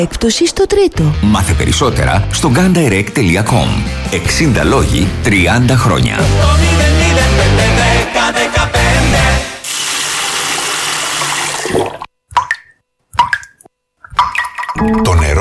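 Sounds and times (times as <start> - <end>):
speech: 0.0 - 6.8, 14.8 - 15.3
loud music: 3.8 - 9.6
water running from a tap: 9.6 - 12.1
water drips: 12.3 - 15.0.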